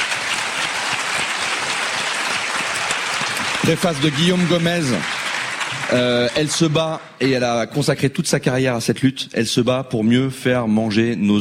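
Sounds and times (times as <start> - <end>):
audience applause: 0.0 - 7.6
speech: 3.7 - 5.2, 5.9 - 11.3.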